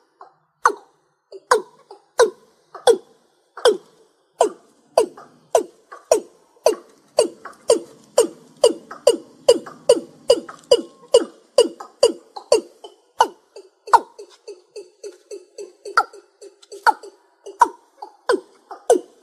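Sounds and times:
East Asian bullfrog croaking: 0.7 - 19.1.

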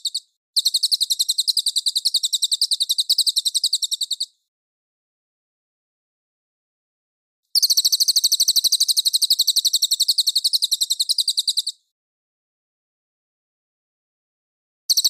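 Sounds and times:
folk song: 0.0 - 4.4, 7.6 - 11.9.

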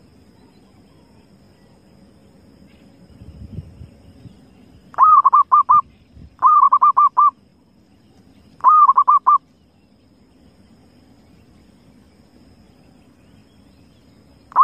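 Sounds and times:
low hum: 0.0 - 14.6
Zebra dove cooing: 5.0 - 5.8, 6.4 - 7.3, 8.6 - 9.4.

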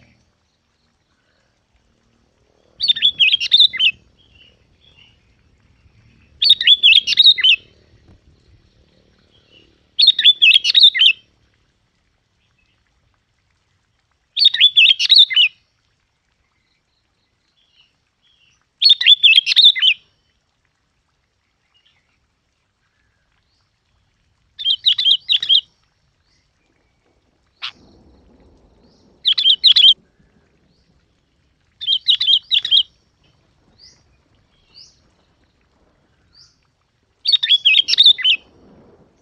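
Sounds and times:
Yellow-vented bulbul bubbly chirping song: 0.0 - 39.1.

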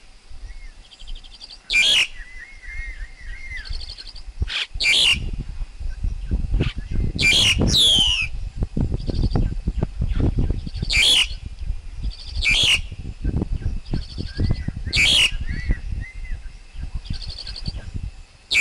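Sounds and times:
low rumbling noise: 0.0 - 18.6
Black-collared Starling song: 0.5 - 5.3, 6.6 - 8.4, 9.0 - 13.0, 13.6 - 17.9.

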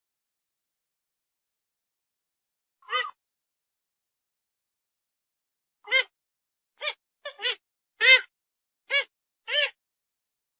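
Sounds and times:
grey-headed swamphen calls: 6.8 - 8.3.

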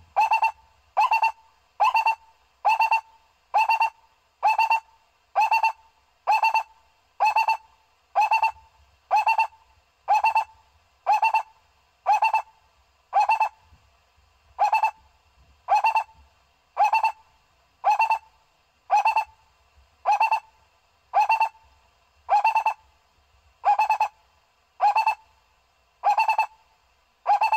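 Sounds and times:
owl hooting: 0.0 - 13.6, 14.6 - 15.0, 15.7 - 16.2, 16.8 - 18.3, 18.9 - 19.4, 20.0 - 21.7, 22.3 - 22.9, 23.6 - 24.2, 24.8 - 25.3, 26.0 - 26.6, 27.2 - 27.5.

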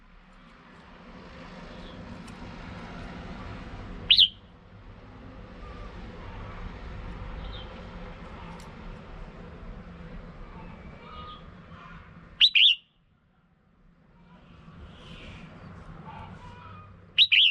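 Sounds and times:
red-whiskered bulbul whistles: 4.1 - 4.4, 12.4 - 12.9, 17.2 - 17.4.

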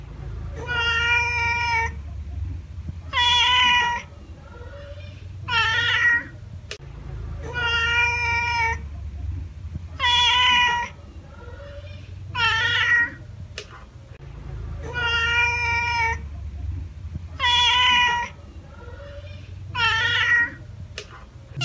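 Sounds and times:
domestic cat giving drawn-out meows: 0.5 - 2.0, 3.1 - 6.4, 7.4 - 8.8, 10.0 - 13.2, 14.8 - 16.2, 17.4 - 20.6.

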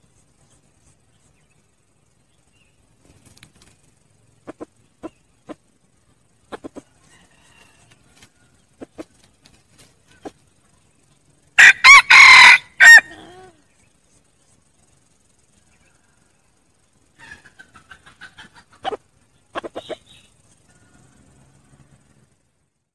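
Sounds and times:
red junglefowl crowing: 6.8 - 8.6, 11.6 - 13.5.

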